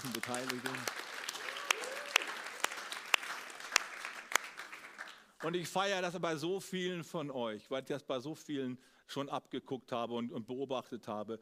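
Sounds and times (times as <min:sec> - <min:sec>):
speech: 0:00.0 - 0:01.0, 0:05.4 - 0:11.3
audience applause: 0:00.0 - 0:05.3.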